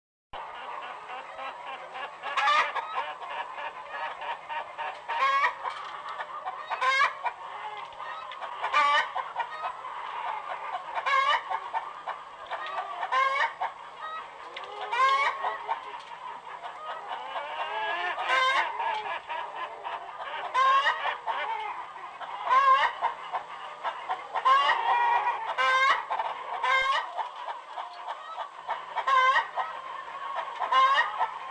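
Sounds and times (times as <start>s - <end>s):
chickens clucking: 0.4s - 31.4s.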